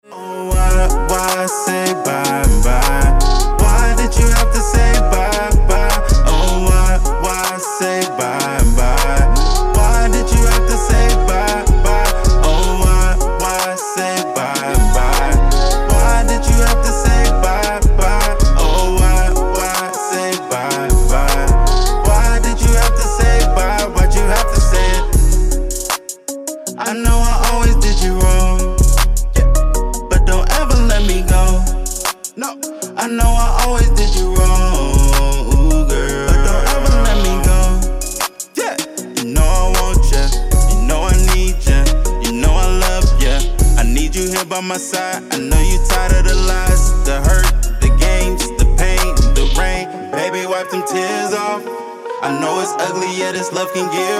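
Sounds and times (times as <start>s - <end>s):
hip hop music: 0.0s - 54.1s.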